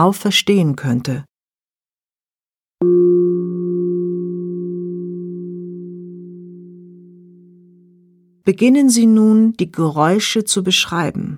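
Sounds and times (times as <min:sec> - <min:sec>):
speech: 0:00.0 - 0:01.3, 0:02.8 - 0:03.5, 0:08.5 - 0:11.3
singing bowl struck and ringing: 0:02.8 - 0:08.2.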